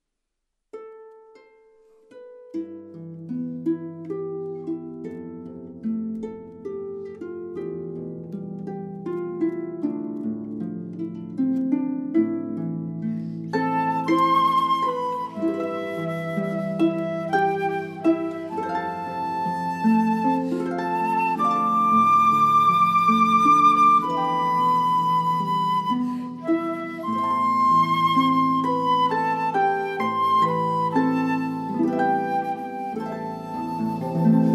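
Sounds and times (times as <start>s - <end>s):
harp: 0.7s - 34.5s
flute: 13.2s - 34.5s.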